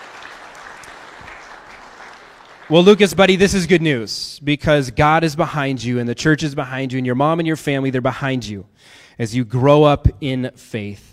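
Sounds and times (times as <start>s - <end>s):
audience applause: 0.0s - 3.4s
speech: 2.7s - 11.1s.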